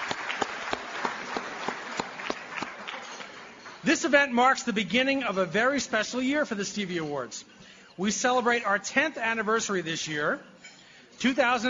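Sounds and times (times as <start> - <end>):
round of applause: 0.0 - 3.8
speech: 3.8 - 10.5, 11.2 - 11.6.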